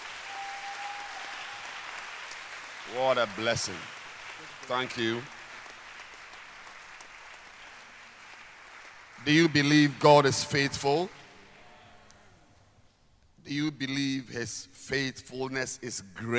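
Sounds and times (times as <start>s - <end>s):
audience clapping hands: 0.0s - 11.1s
speech: 2.9s - 4.0s, 4.7s - 5.4s, 9.2s - 11.2s, 13.5s - 16.3s.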